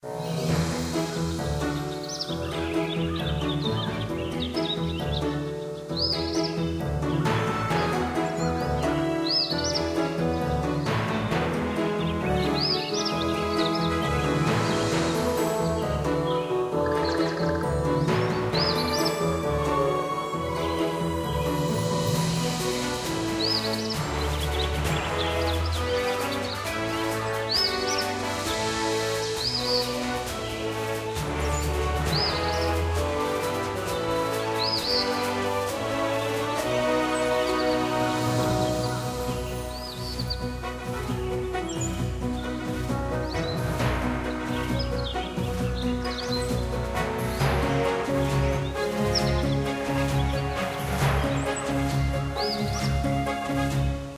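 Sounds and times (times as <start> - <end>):
epic forest day theme music: 0.0 - 54.1.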